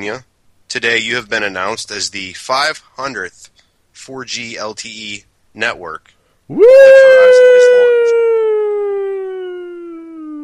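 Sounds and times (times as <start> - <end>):
speech: 0.0 - 7.5
person cheering woo: 6.5 - 10.4.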